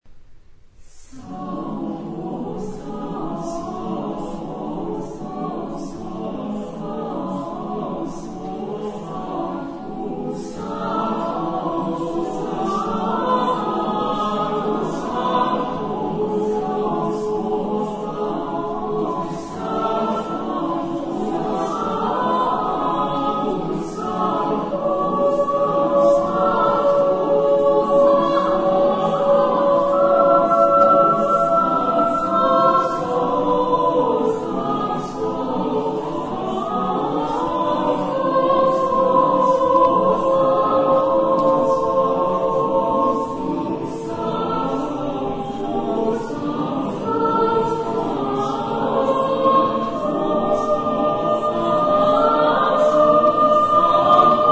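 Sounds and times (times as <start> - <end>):
choir singing: 0.9 - 54.4.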